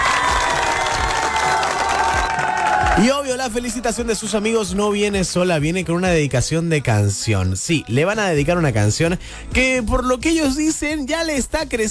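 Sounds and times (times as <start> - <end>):
audience applause: 0.0 - 3.1
speech: 3.0 - 11.8.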